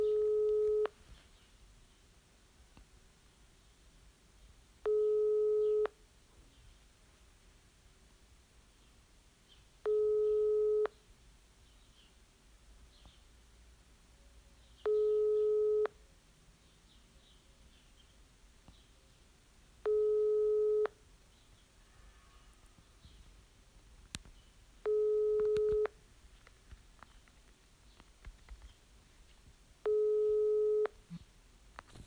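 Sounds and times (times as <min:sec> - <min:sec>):
ringback tone of an unanswered phone call: 0:00.0 - 0:00.9, 0:04.8 - 0:06.0, 0:09.9 - 0:11.0, 0:14.9 - 0:16.0, 0:19.8 - 0:21.0, 0:24.8 - 0:26.0, 0:29.8 - 0:31.0
faint hiss: 0:00.0 - 0:32.0.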